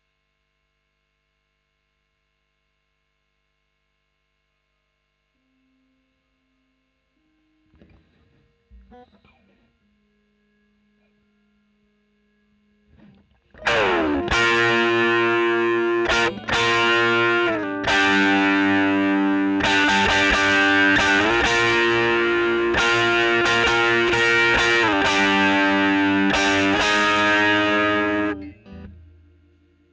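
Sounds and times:
overdriven electric guitar recorded with Royer microphone: 7.2 - 29.9.

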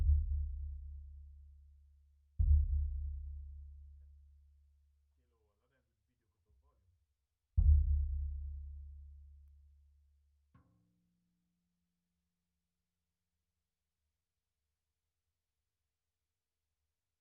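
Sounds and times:
sub bass: 0.0 - 1.6, 2.4 - 4.2, 7.6 - 9.3.

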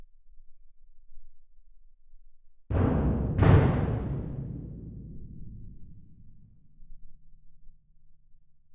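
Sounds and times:
percussion: 2.7 - 7.8.

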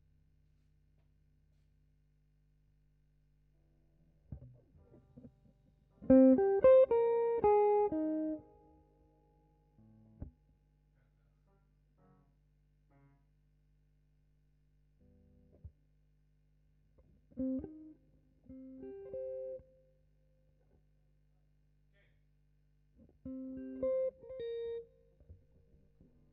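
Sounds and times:
guitar: 4.2 - 10.4, 15.0 - 15.8, 17.0 - 20.0, 23.0 - 26.3.

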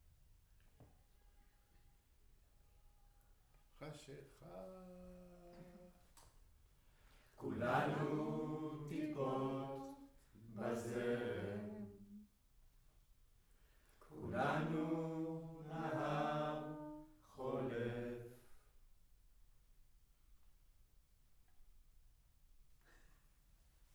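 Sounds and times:
choir singing in room: 7.4 - 12.3, 14.1 - 18.6.

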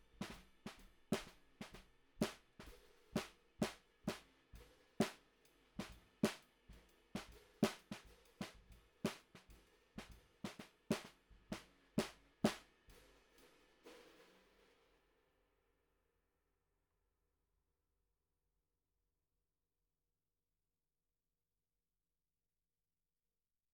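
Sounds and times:
snare drum recorded from the bottom: 0.0 - 14.8.

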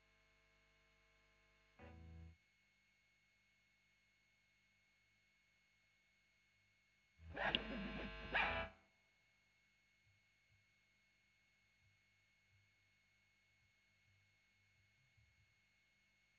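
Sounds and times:
overdriven electric guitar recorded with Royer microphone: 7.3 - 8.7.

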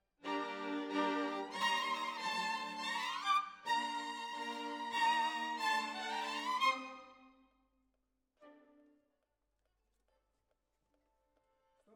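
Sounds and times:
violins: 0.2 - 7.4.

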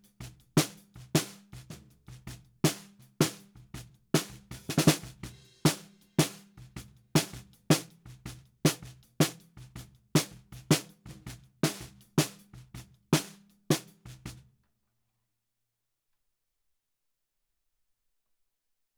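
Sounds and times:
snare drum bottom: 0.0 - 14.4.

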